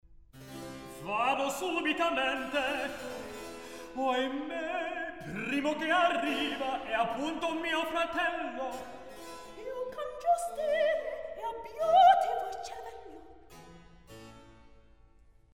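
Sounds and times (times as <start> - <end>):
recitative singing: 1.0 - 13.2.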